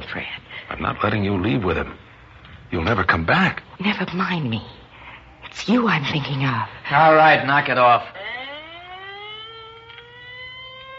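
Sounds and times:
speech: 0.1 - 2.0, 2.7 - 4.8, 5.5 - 8.2
ambulance siren passing: 6.9 - 10.9.

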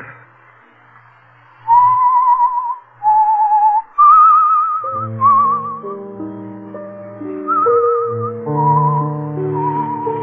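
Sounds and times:
person whistling a tune: 1.7 - 6.2, 7.4 - 10.2.

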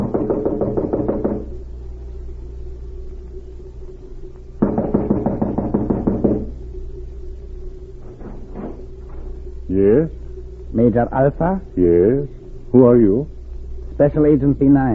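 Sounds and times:
knocking on a wooden cottage door: 0.0 - 1.6, 4.6 - 6.6
speech: 10.9 - 13.3, 14.0 - 14.9.

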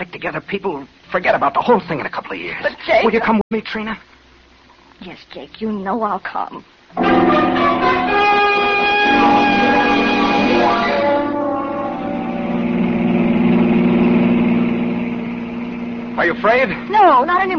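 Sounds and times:
speech: 0.1 - 4.1, 5.0 - 8.4, 16.2 - 17.5
car engine running hard while driving fast at almost 70: 7.0 - 17.5.

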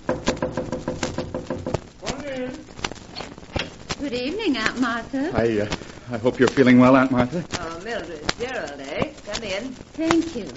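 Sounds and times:
knocking on a door: 0.0 - 1.8
speech: 4.0 - 10.5.

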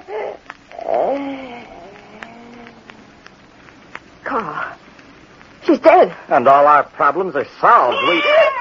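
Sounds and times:
cat: 0.7 - 3.2, 7.8 - 8.5
speech: 5.7 - 8.4.

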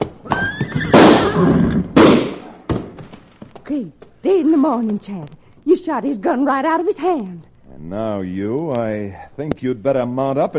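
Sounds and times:
horse whinnying: 0.2 - 2.0
speech: 3.7 - 10.5.

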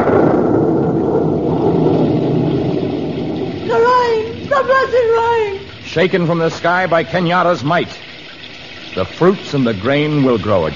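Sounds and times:
thunder rumbling: 0.0 - 7.8
speech: 6.0 - 8.0, 9.0 - 10.7.

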